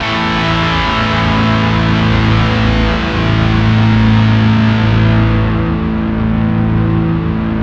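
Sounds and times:
bizarre guitar: 0.0 - 7.6.

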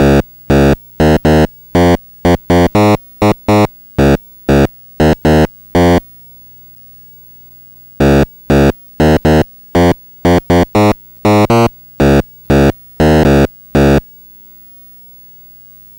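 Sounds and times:
Atari 2600 chiptune bass: 0.0 - 6.0, 8.0 - 14.0.

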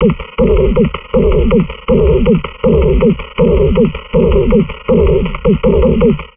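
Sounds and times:
crazy processed drum loop: 0.0 - 6.3.

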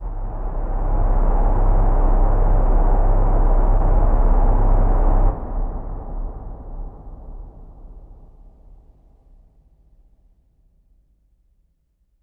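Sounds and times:
scary cinematic impact: 0.0 - 8.8.

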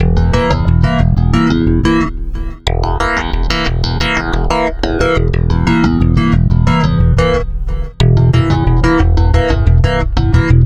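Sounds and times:
stick bass loop: 0.0 - 10.6.

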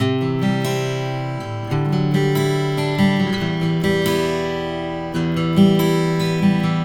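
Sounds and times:
acoustic pop guitar at 128 BPM in E minor: 0.0 - 6.8.

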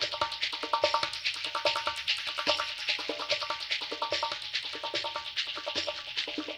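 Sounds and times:
music: 0.0 - 6.5.

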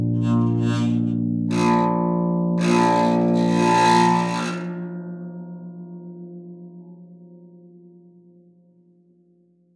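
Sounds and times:
harp: 0.2 - 5.1.

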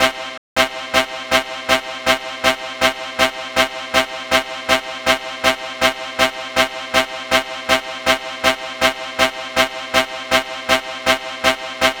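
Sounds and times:
hardcore dance synth loops: 0.0 - 11.9.

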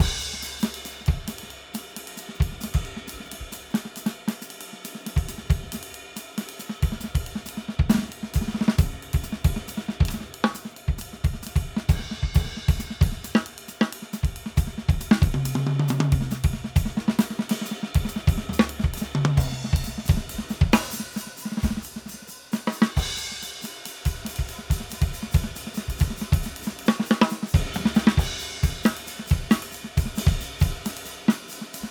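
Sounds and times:
straight eighth jazz improvisation drums: 0.0 - 31.8.

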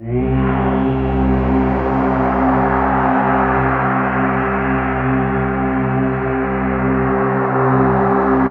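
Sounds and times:
synth pad: 0.0 - 8.4.

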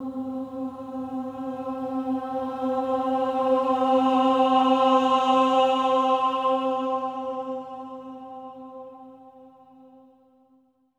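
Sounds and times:
choir swelling ahs on C4: 0.0 - 8.7.

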